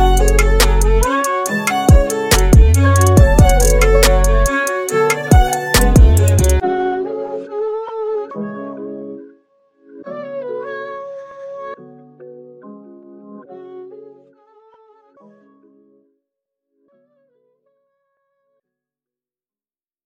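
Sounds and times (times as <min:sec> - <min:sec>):
sad instrumental hip hop trap beat: 0:00.0 - 0:06.6.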